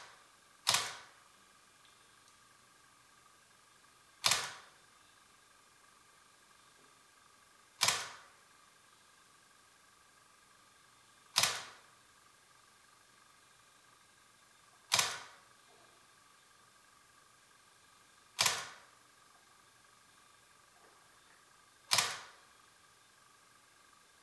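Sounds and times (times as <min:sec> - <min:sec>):
350D, D70 and 300D camera shutter release: 0:00.7 - 0:01.2, 0:04.2 - 0:04.8, 0:07.8 - 0:08.3, 0:11.4 - 0:11.9, 0:14.9 - 0:15.4, 0:18.4 - 0:18.9, 0:21.9 - 0:22.4.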